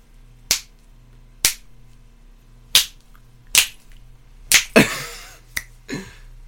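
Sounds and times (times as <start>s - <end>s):
faint steady hum: 0.0s - 6.4s
finger snaps: 0.5s - 0.8s, 2.8s - 4.8s, 5.5s - 5.8s.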